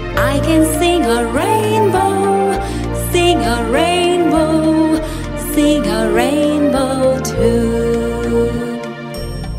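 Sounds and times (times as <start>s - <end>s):
English children's nursery rhyme song: 0.0s - 9.4s.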